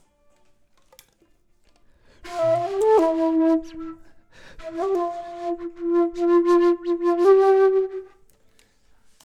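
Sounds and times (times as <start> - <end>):
flute: 2.2 - 8.3.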